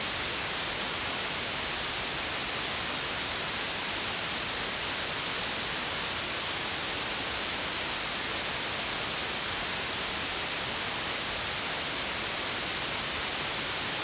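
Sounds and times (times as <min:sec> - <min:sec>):
stereo white noise: 0:00.0 - 0:14.0.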